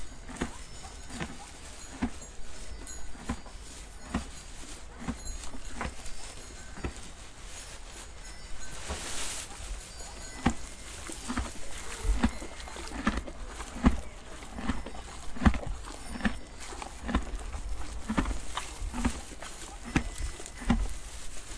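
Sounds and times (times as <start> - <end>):
horse hooves clopping at a walk: 0.0 - 21.5.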